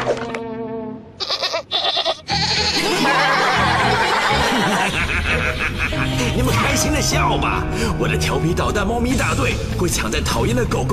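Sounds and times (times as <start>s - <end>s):
goat bleating in wavering nasal cries: 1.2s - 2.9s
laughter: 2.6s - 6.7s
speech: 6.8s - 10.9s.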